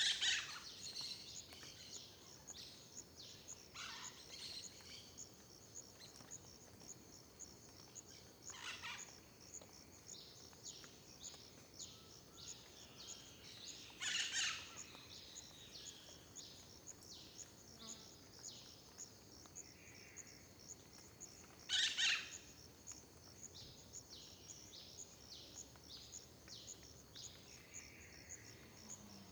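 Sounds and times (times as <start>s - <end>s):
cricket chirping at dawn in a park near a road: 0.0s - 29.2s.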